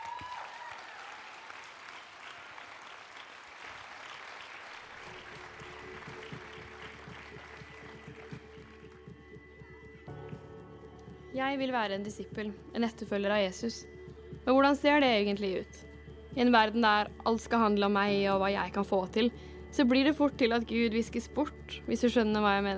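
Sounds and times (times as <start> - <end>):
audience applause: 0.0 - 10.0
speech: 11.4 - 22.7.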